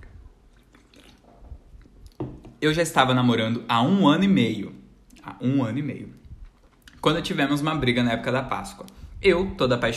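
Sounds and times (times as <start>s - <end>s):
small sip of a drink, slurping and swallowing: 0.0s - 2.2s
speech: 2.6s - 4.8s, 5.4s - 6.2s, 7.0s - 9.9s.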